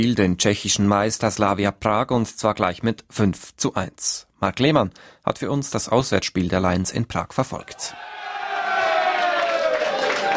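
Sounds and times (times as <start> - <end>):
speech: 0.0 - 8.2
ZSC Lions ice hockey players cheering in their locker room after a win: 7.7 - 10.3.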